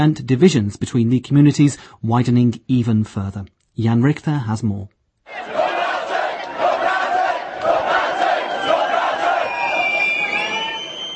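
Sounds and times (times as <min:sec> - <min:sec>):
speech: 0:00.0 - 0:05.5
crowd shouting slogans at a march: 0:05.3 - 0:10.6.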